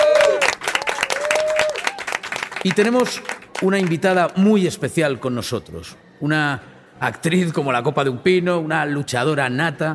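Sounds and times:
live audience applause: 0.0s - 4.2s
speech: 2.6s - 9.9s.

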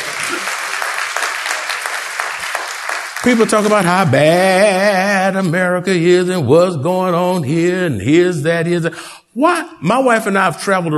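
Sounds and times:
crowd applauding: 0.0s - 4.3s
speech: 3.2s - 10.9s.

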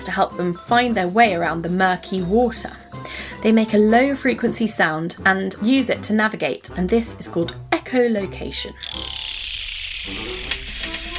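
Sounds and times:
speech: 0.0s - 9.2s
scratchy bursts: 8.8s - 11.1s
turtle hissing by pushing air out: 8.8s - 11.1s.

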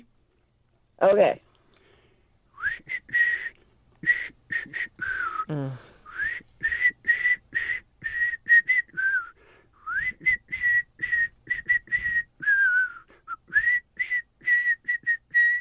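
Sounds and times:
speech: 1.0s - 1.4s
person whistling a pop song melody: 2.5s - 15.5s.

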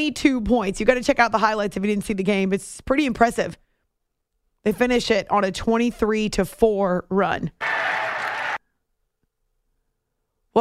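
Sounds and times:
speech: 0.0s - 3.6s, 4.6s - 8.0s
crowd cheering in Phoenix: 7.6s - 8.6s.

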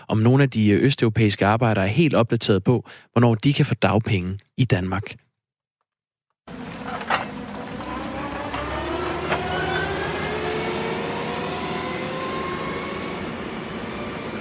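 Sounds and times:
speech: 0.1s - 5.2s
construction site ambience in Aarhus: 6.5s - 14.3s
vehicle engine: 6.5s - 14.3s.

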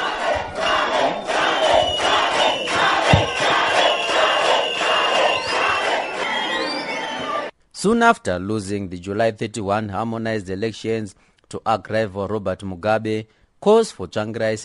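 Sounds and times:
crowd applauding: 0.0s - 7.5s
thin whistle-like tone: 0.6s - 7.5s
speech: 7.8s - 14.6s.

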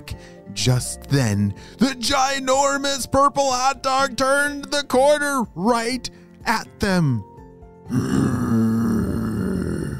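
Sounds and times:
speech: 0.0s - 7.3s, 7.9s - 8.2s
voice imitating a monster growl: 7.9s - 9.9s.

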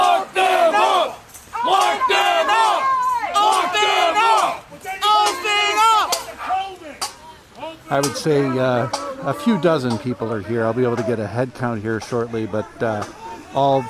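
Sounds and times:
protesters shouting rhythmic chants on the front lawn of Mark Poloncarz's home: 0.0s - 11.1s, 12.1s - 13.8s
speech: 7.9s - 13.8s.

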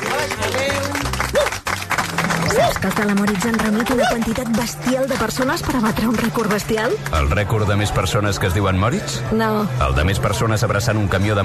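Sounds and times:
audience applause: 0.0s - 7.3s
speech: 2.8s - 11.4s.

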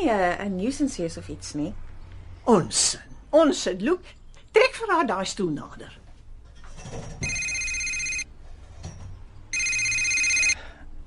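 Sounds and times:
speech: 0.0s - 6.0s, 6.8s - 7.3s
telephone ringing: 7.2s - 8.3s, 9.5s - 10.7s.

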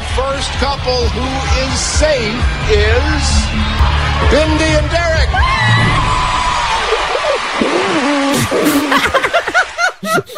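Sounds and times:
speech: 0.2s - 6.4s, 7.5s - 9.4s
laughter: 6.8s - 10.3s
fart: 7.6s - 9.0s.

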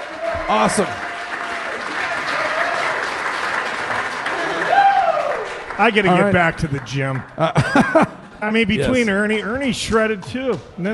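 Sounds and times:
audience applause: 0.0s - 7.7s
speech: 0.5s - 1.1s, 5.8s - 10.9s
laughter: 7.4s - 9.1s.

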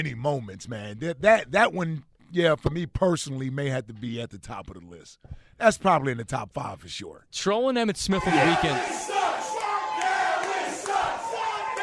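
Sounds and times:
speech: 0.0s - 9.4s
large stadium crowd chanting: 8.2s - 11.8s
sharp shouts from a stadium crowd: 8.2s - 11.8s.

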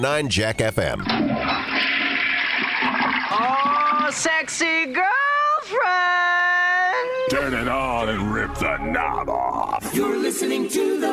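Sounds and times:
speech: 0.0s - 1.8s, 3.3s - 11.1s
toilet flushing: 1.0s - 4.3s.

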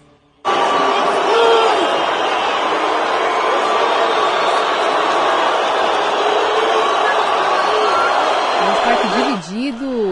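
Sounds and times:
large concert crowd booing and jeering: 0.4s - 10.1s.

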